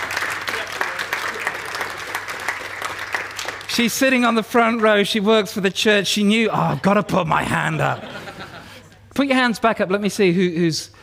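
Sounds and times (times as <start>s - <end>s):
audience applause: 0.0s - 3.9s
speech: 3.8s - 8.2s, 9.2s - 11.0s
laughter: 7.4s - 9.1s.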